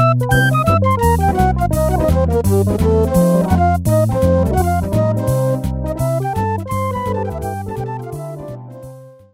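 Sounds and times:
swing rhythm pattern from an electronic organ rhythm unit: 0.0 - 9.3.

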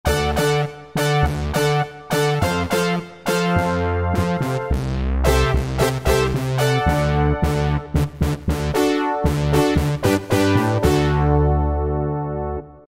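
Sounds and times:
synth brass with oscillator sync: 0.1 - 12.8.

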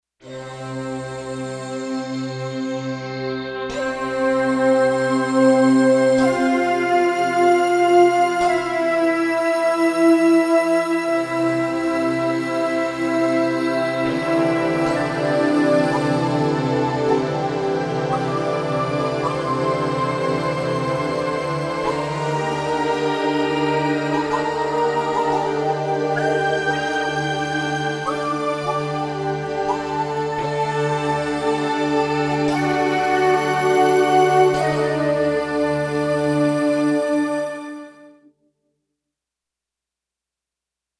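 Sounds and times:
new age jam music: 0.2 - 38.4.

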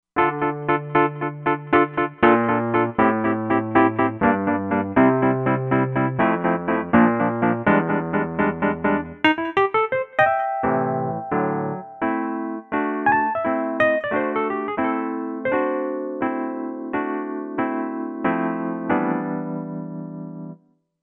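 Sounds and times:
Wurli amp synth piano: 0.2 - 20.6.

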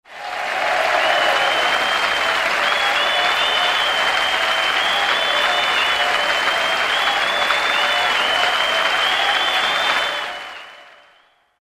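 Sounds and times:
crowd: 0.0 - 11.6.

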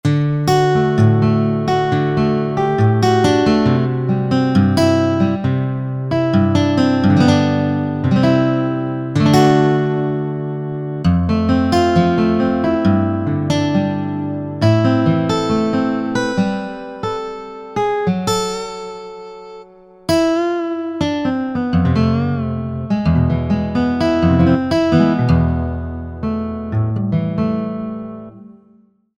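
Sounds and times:
steel guitar: 0.0 - 28.8.

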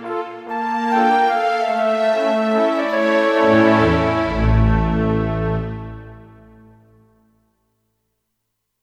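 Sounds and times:
synthesizer horn and flute with strings: 0.0 - 6.7.

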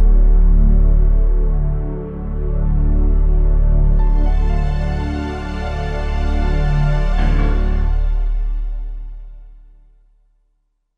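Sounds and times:
Korg TR-Rack strings: 0.0 - 9.6
Korg TR-Rack piano: 0.0 - 10.1.

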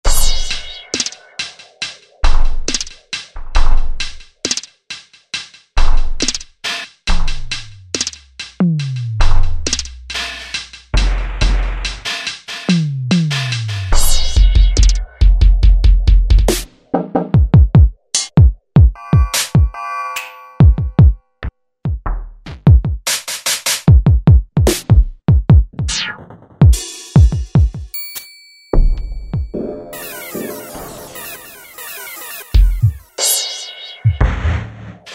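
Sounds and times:
alien kit synth drums: 0.0 - 4.2, 7.4 - 19.8, 20.6 - 21.2, 23.9 - 28.0, 28.8 - 35.1.

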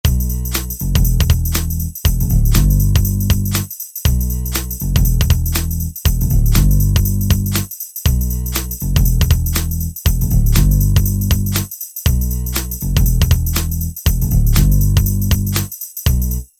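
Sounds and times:
trip hop music: 0.0 - 16.4.

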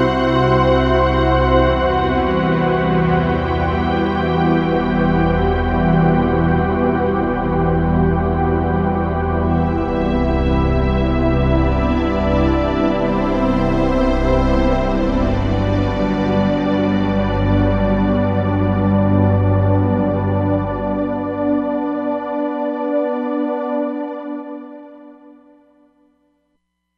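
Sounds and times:
synthesizer pad: 0.0 - 25.4.

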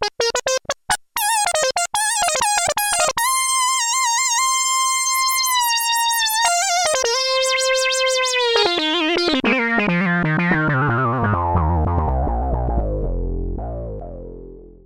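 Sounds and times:
funk bass on a Korg Poly-61M synthesizer: 0.1 - 14.8.

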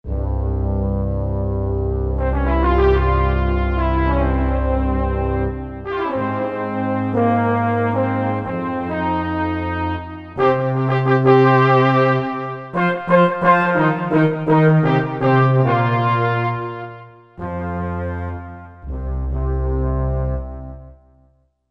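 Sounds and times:
French horn and trombone on Korg MSC-11S Brass: 0.1 - 21.1.

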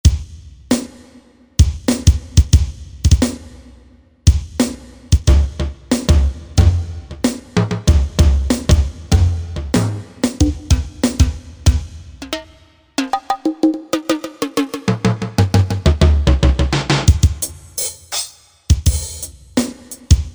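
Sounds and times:
drums: 0.0 - 20.3.

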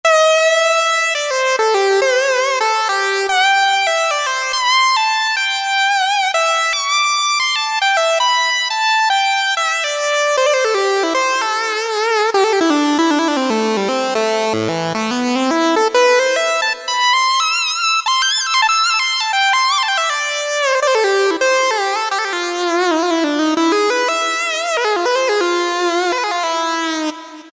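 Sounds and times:
lead melody: 0.1 - 27.5.

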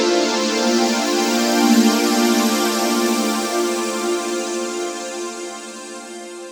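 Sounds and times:
synth pad: 0.1 - 6.5.

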